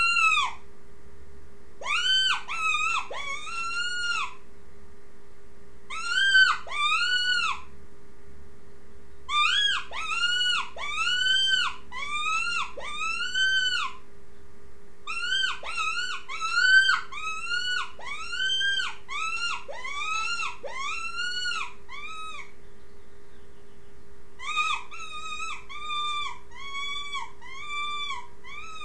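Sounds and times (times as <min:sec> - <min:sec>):
rabbit squealing cries: 0:00.0 - 0:00.6, 0:01.8 - 0:04.4, 0:05.9 - 0:07.7, 0:09.3 - 0:14.1, 0:15.0 - 0:22.6, 0:24.4 - 0:28.8
faint constant hum: 0:00.0 - 0:28.8.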